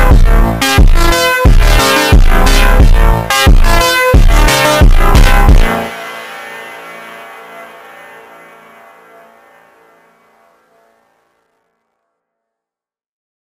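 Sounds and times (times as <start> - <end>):
slowed montagem funk music: 0.0 - 10.5.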